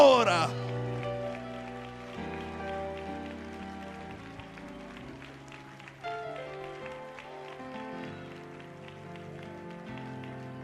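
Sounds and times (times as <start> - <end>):
sustained keyboard or organ chords: 0.0 - 6.4
audience clapping: 0.0 - 10.6.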